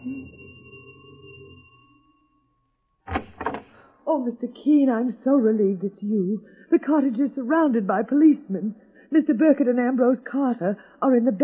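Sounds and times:
doorbell ringing: 0:00.0 - 0:02.8
speech: 0:04.1 - 0:11.4.

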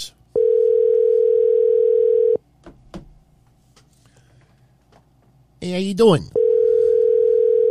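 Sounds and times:
telephone ringback tone during outgoing call: 0:00.4 - 0:02.4, 0:06.4 - 0:07.6
speech: 0:05.6 - 0:06.4.

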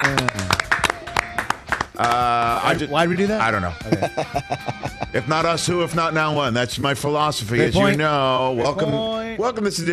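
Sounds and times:
applause: 0:00.0 - 0:02.3
speech: 0:02.0 - 0:09.9
laughter: 0:03.8 - 0:05.4.

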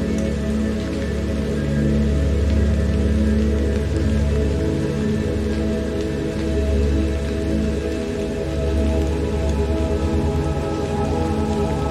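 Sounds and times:
meditative music with low droning tone: 0:00.0 - 0:11.8
steady rain hissing: 0:00.0 - 0:11.8.

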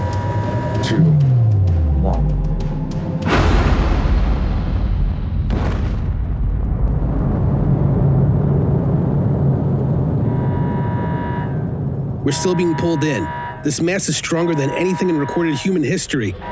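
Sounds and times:
long loud low rumble with steady hum: 0:00.0 - 0:15.4
speech: 0:00.9 - 0:01.3, 0:12.3 - 0:16.5
staged nuclear explosion bursts from reactor coils flushed with fuel injectors: 0:03.2 - 0:10.8.

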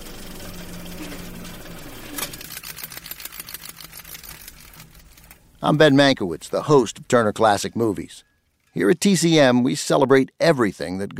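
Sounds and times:
reel of film flickering through a projector: 0:00.0 - 0:08.8
speech: 0:05.6 - 0:11.1.

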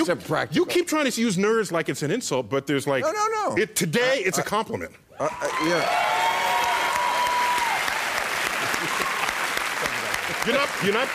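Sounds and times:
speech: 0:00.0 - 0:06.1, 0:10.4 - 0:11.1
audience applause: 0:05.4 - 0:11.1.

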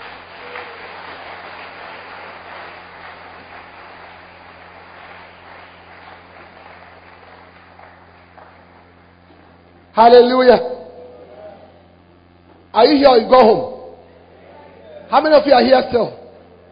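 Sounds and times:
crowd clapping in a large room: 0:00.0 - 0:09.6
low hum: 0:00.0 - 0:16.7
speech: 0:10.0 - 0:10.7, 0:12.8 - 0:13.7, 0:15.1 - 0:16.2.

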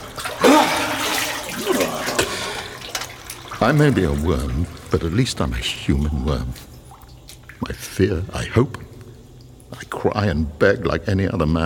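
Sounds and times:
warm water pouring and splashing: 0:00.0 - 0:08.0
speech: 0:03.6 - 0:06.7, 0:07.7 - 0:08.8, 0:10.0 - 0:11.6.

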